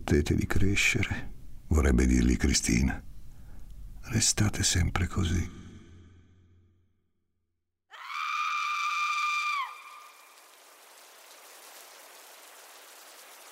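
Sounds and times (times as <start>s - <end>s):
speech: 0.1s - 3.1s, 4.0s - 5.6s
steady rain falling: 8.6s - 13.5s.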